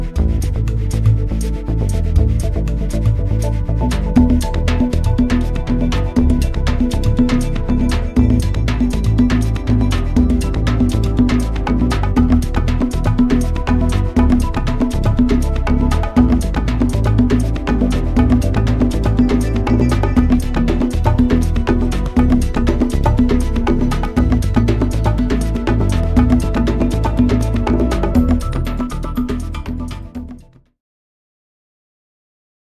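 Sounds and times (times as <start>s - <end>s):
beats: 0.2s - 30.4s.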